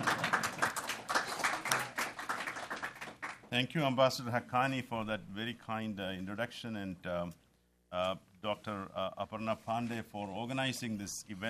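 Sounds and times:
audience applause: 0.0 - 3.5
speech: 3.5 - 11.4.

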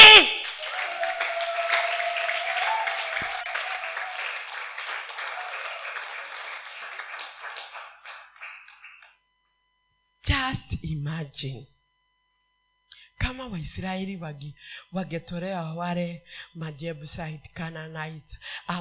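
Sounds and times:
church congregation applauding during a Sunday service: 0.0 - 9.2
speech: 11.2 - 11.8, 13.4 - 18.7.

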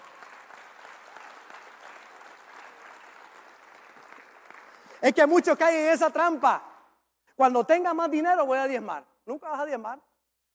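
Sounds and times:
audience applause: 0.0 - 5.0
speech: 5.0 - 6.7, 7.4 - 10.5.

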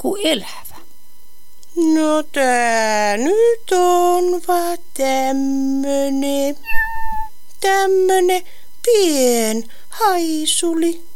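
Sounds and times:
speech: 0.0 - 0.6, 1.8 - 6.9, 7.6 - 11.1
small cat meowing: 6.6 - 7.4.

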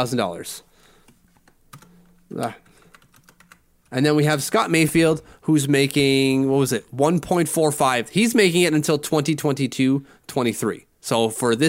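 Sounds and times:
speech: 0.0 - 0.7, 2.3 - 2.6, 3.9 - 11.6
typing numbers on a computer keyboard: 1.0 - 4.0.

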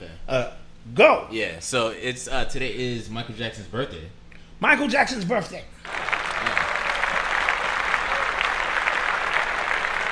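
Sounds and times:
speech: 0.3 - 5.7
applause sound effect: 5.9 - 10.1.

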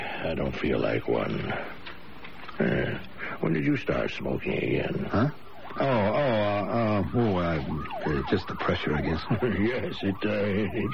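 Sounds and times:
speech: 0.2 - 1.8, 2.6 - 10.9
ambulance siren: 5.1 - 10.9.

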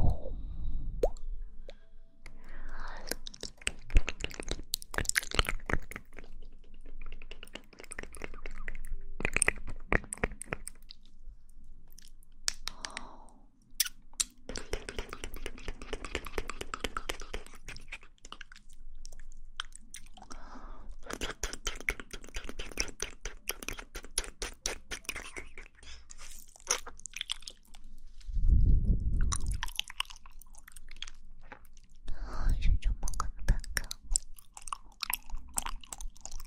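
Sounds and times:
mouth sounds of wet clicks, smacks and pops: 1.0 - 11.1, 11.9 - 27.8, 29.0 - 36.4
short low thumps or breathy rumbles: 28.4 - 29.4.

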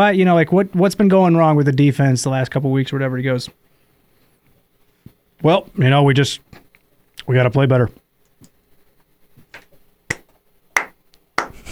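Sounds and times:
speech: 0.0 - 3.6, 5.4 - 6.6, 7.2 - 8.0
slow clap: 9.6 - 11.6.

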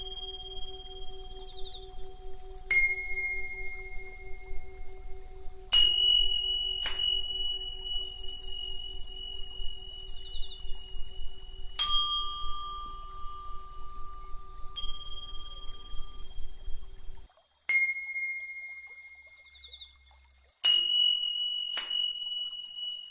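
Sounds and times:
low steady hum: 0.0 - 17.3
sustained tone: 0.0 - 17.3
chimes ringing against Tibetan bowls: 0.0 - 19.3, 20.6 - 23.0.

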